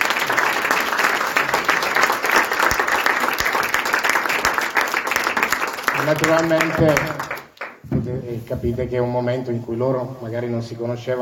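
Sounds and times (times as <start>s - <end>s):
audience applause: 0.0s - 7.8s
speech: 6.1s - 7.2s, 8.1s - 11.2s.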